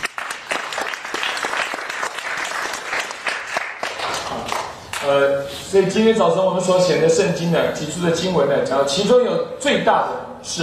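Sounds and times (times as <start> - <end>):
audience applause for mothers: 0.0 - 4.8
speech: 5.1 - 10.6.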